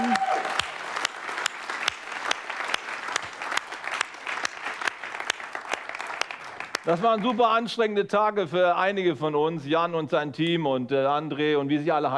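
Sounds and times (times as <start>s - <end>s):
audience applause: 0.0s - 7.6s
speech: 6.9s - 12.1s.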